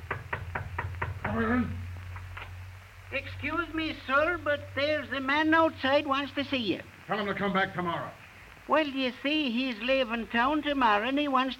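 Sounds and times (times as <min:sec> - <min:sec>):
knock on office door: 0:00.0 - 0:01.5
speech: 0:01.4 - 0:01.8, 0:03.1 - 0:11.5.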